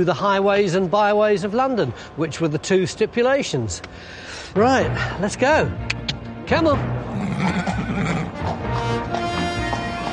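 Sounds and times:
speech: 0.0 - 8.6
horse hitched to a horse-drawn cab neighing in a London street: 7.1 - 9.0
clatter of horse hooves: 7.3 - 10.1.

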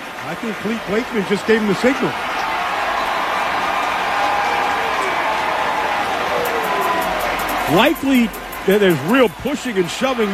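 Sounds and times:
stadium crowd cheering: 0.0 - 10.3
speech: 0.3 - 2.3, 7.7 - 10.3.

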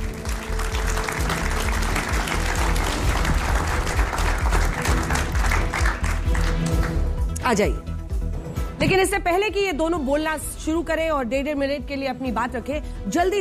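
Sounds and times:
audience applause welcoming debaters: 0.0 - 7.0
speech: 7.5 - 7.9, 8.8 - 13.4.

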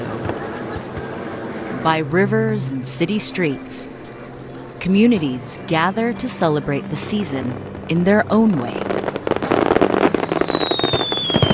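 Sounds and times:
speech: 1.8 - 4.0, 4.8 - 9.0
fireworks crackling at a summer festival in Tokyo: 8.6 - 11.5.

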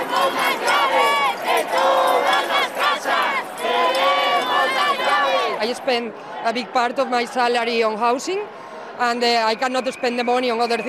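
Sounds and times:
protest crowd chanting in unison over Spain's housing crisis: 0.0 - 7.4
speech: 5.6 - 10.8.

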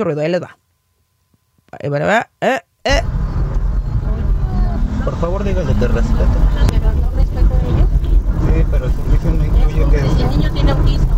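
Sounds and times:
speech: 0.0 - 0.6, 1.7 - 3.2, 5.0 - 6.7, 8.6 - 11.1
road and engine rumble inside a moving car: 2.9 - 11.1.

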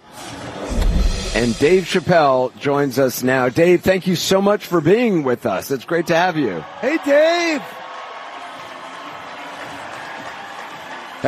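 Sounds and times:
crowd cheering: 0.0 - 2.8, 5.6 - 11.2
speech: 1.4 - 7.8.

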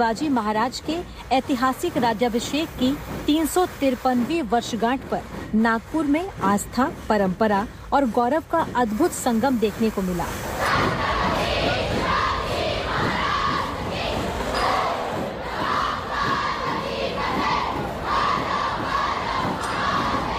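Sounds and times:
speech: 0.0 - 11.0
steady low thuds: 0.0 - 20.3
large festival crowd cheering and shouting: 10.6 - 20.3.

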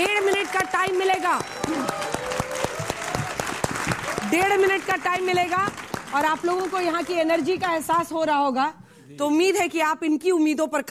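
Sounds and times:
audience applause: 0.0 - 7.8
speech: 0.8 - 2.0, 4.3 - 10.9.

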